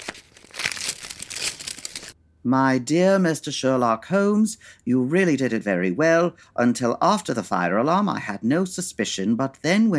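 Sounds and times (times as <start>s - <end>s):
paper letter being unfolded, crinkling: 0.0s - 2.2s
speech: 2.4s - 9.9s.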